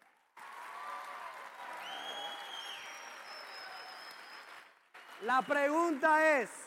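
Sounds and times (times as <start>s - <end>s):
audience applause: 0.0s - 6.6s
faint whistles: 1.8s - 4.6s
speech: 5.2s - 6.6s.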